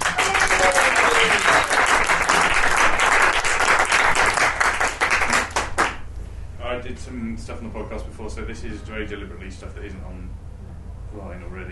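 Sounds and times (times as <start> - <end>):
faint voices and whoops: 0.0 - 2.0
audience applause welcoming comedian to stage: 0.0 - 6.1
speech: 7.4 - 10.5, 11.1 - 11.6.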